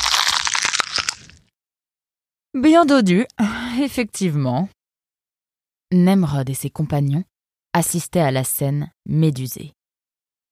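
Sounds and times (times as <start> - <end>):
brown vixen biting into a still-living piranha: 0.0 - 1.5
speech: 2.6 - 4.8, 5.9 - 9.8.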